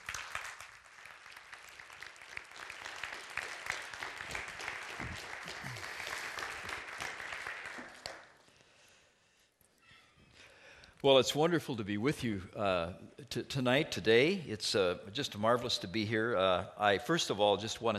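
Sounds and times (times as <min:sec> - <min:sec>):
audience applause welcoming a speaker to the stage: 0:00.0 - 0:08.4
speech: 0:11.0 - 0:17.9.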